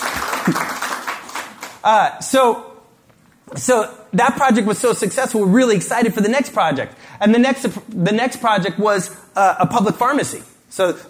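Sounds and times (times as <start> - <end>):
audience clapping: 0.0 - 1.8
speech: 0.4 - 0.8, 1.8 - 2.7, 3.5 - 11.0.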